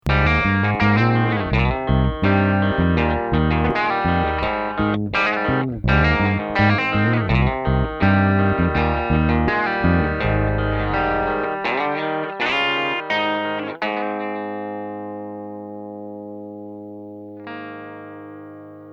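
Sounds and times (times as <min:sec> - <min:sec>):
instrumental music: 0:00.0 - 0:18.9.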